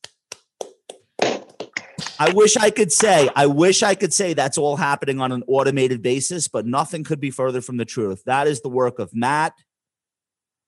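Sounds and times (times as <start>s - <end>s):
people clapping: 0.0s - 3.6s
speech: 2.2s - 9.7s.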